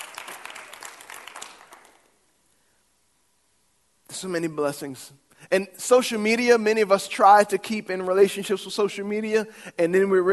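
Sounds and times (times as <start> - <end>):
audience clapping: 0.0 - 2.2
speech: 4.2 - 10.3.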